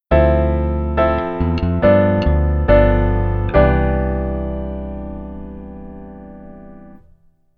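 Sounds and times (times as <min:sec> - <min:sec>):
keyboard rootless chord voicings: 0:00.0 - 0:07.2.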